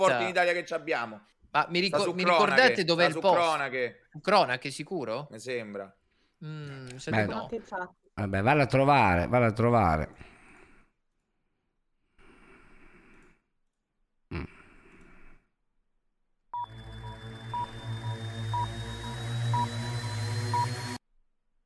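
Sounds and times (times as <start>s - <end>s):
speech: 0.0s - 10.3s
breathy noises: 10.1s - 11.0s, 12.0s - 13.5s, 14.3s - 15.6s
telephone beeps during a call to a fortune teller: 16.6s - 19.7s
telephone line hum during a call to a fortune teller: 16.6s - 21.0s.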